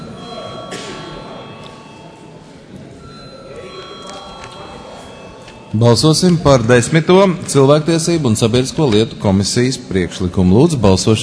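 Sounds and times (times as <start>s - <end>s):
parliament chamber bell ringing to call a vote: 0.0s - 7.0s
low murmur of voices: 0.0s - 11.2s
speech: 5.7s - 11.2s.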